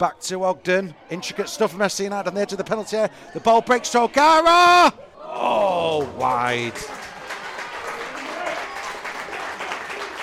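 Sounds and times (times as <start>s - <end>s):
speech: 0.0s - 7.0s
crowd applause at a football match: 5.3s - 10.2s.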